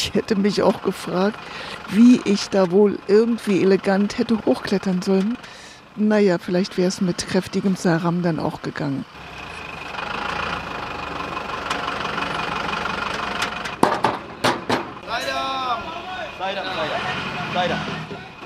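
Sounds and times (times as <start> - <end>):
speech: 0.0 - 9.3
engine rumble from lorries driving ahead in a procession: 0.0 - 18.4
sharp knocks: 13.6 - 15.0.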